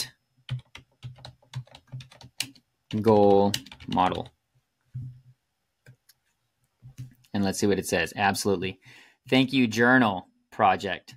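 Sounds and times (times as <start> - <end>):
typing on a computer keyboard: 0.5 - 4.3
speech: 2.9 - 4.4, 7.4 - 11.1.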